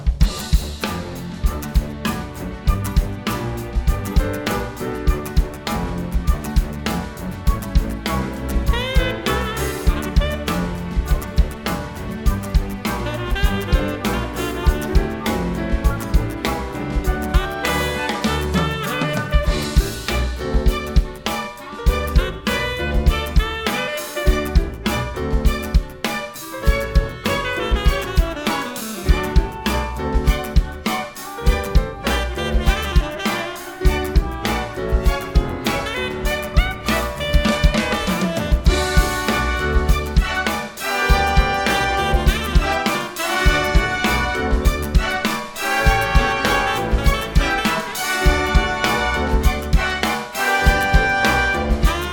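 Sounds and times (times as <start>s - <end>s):
Motown orchestra music: 0.2s - 52.0s.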